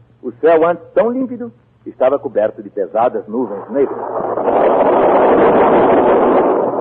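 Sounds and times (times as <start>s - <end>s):
speech: 0.2s - 5.6s
thunder in a thunderstorm: 3.5s - 6.7s.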